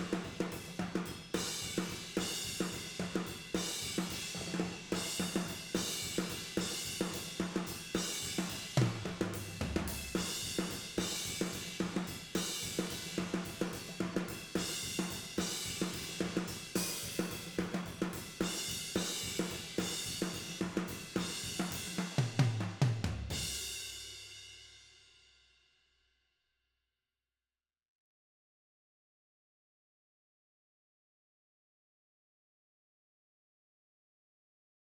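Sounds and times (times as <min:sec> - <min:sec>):
tom drums: 0:00.0 - 0:24.2.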